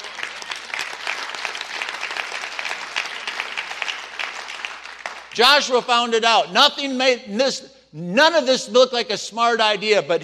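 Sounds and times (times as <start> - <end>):
crowd applauding: 0.0 - 5.6
speech: 5.4 - 10.2.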